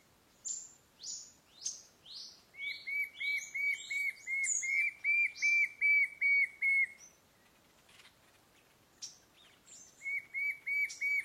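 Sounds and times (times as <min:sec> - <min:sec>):
White-shouldered fire-eye song: 0:00.4 - 0:07.2, 0:09.0 - 0:11.2.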